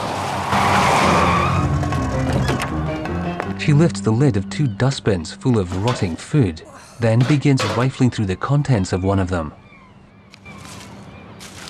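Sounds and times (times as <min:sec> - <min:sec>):
coupe screeching to a halt: 0:00.3 - 0:03.0
speech: 0:03.7 - 0:09.6.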